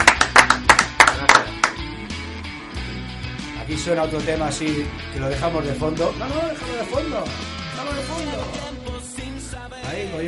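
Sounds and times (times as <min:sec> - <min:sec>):
applause: 0:00.0 - 0:01.8
speech: 0:03.7 - 0:08.9, 0:09.9 - 0:10.2.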